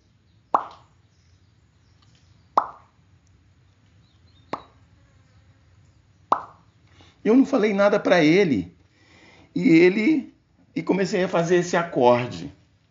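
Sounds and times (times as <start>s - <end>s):
single water drop dripping: 0.5s - 0.9s, 2.6s - 3.3s, 6.3s - 6.6s
speech: 7.2s - 8.8s, 9.6s - 12.6s.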